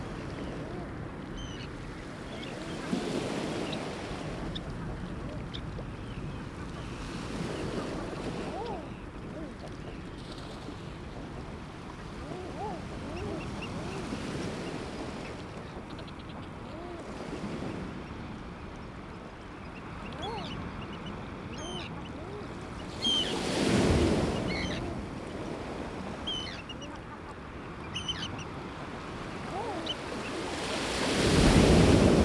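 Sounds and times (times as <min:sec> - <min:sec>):
ocean by day: 0:00.0 - 0:32.2.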